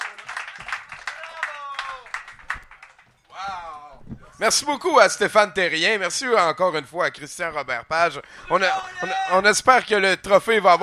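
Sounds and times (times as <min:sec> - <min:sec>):
audience applauding: 0:00.0 - 0:03.1
speech: 0:03.4 - 0:03.8, 0:04.4 - 0:10.8.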